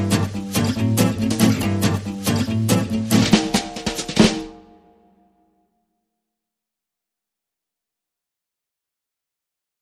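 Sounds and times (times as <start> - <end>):
guitars: 0.0 - 4.8
drums: 0.0 - 5.0.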